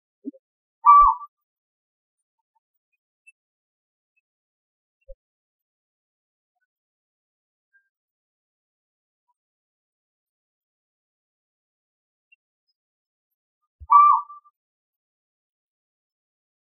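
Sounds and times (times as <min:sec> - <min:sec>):
Asian barred owlet Glaucidium cuculoides calling: 0:00.8 - 0:01.2, 0:13.9 - 0:14.4.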